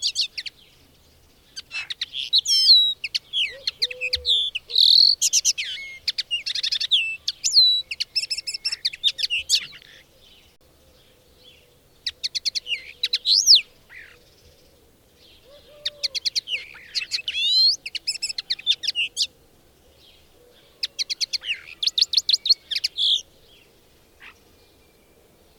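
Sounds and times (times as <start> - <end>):
bird song chirps and whistles: 1.6 - 10.0, 12.0 - 14.2, 15.8 - 19.3, 20.9 - 23.2.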